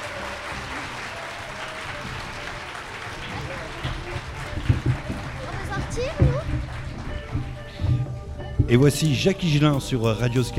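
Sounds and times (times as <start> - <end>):
live audience applause: 0.0 - 8.1
speech: 8.7 - 10.5.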